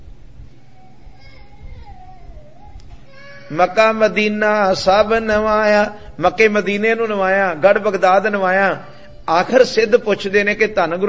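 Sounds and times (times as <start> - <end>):
children playing and making noise in a congregation: 0.5 - 3.8
speech: 3.5 - 11.0.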